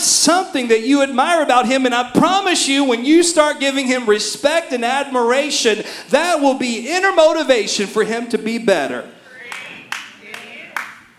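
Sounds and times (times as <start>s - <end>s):
speech: 0.2s - 9.2s
quiet golf claps: 9.5s - 11.1s.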